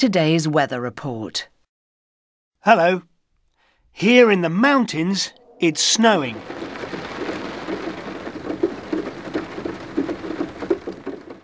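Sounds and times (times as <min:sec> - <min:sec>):
speech: 0:00.0 - 0:01.5, 0:02.6 - 0:03.1, 0:04.0 - 0:06.8
steady rain falling: 0:05.2 - 0:11.4.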